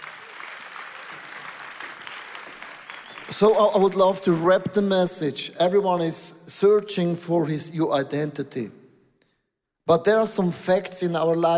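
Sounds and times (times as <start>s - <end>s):
audience applause: 0.0s - 3.5s
speech: 3.3s - 8.8s, 9.9s - 11.5s.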